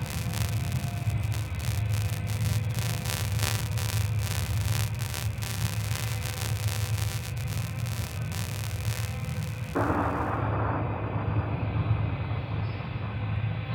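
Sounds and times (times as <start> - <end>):
rapid crackling bursts: 0.0 - 11.3
space battle heavy low rumble with grinding rushing texture: 0.0 - 13.6.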